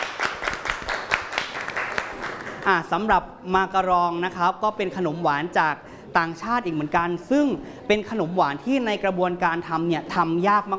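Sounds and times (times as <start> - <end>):
group of people applauding: 0.0 - 2.8
speech: 2.6 - 10.7.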